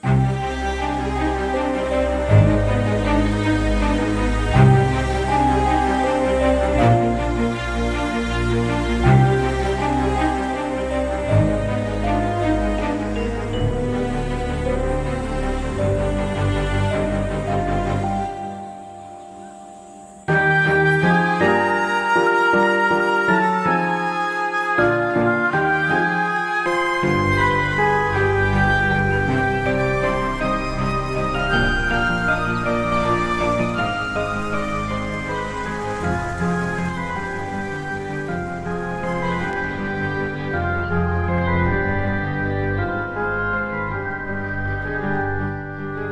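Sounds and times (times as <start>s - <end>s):
sad background music: 0.0s - 46.1s.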